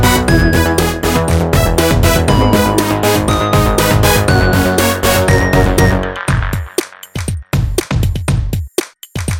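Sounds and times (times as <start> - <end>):
synth pop party music bed: 0.0 - 9.2.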